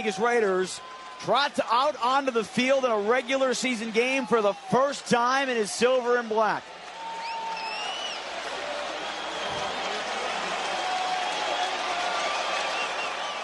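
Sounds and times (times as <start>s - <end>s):
speech: 0.0s - 6.8s
large stadium crowd cheering: 0.0s - 13.4s
high whistles from stadium crowd: 7.2s - 10.0s, 10.8s - 13.4s.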